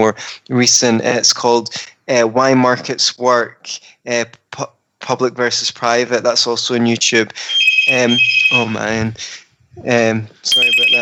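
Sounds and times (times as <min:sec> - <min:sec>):
speech: 0:00.0 - 0:11.0
phone ringing with a loud electronic ringtone: 0:07.4 - 0:09.0, 0:10.5 - 0:11.0.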